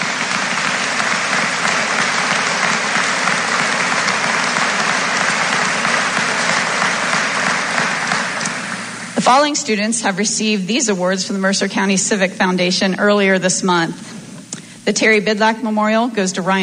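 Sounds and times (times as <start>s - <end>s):
crowd clapping: 0.0s - 9.2s
speech: 9.3s - 14.2s, 14.9s - 16.6s.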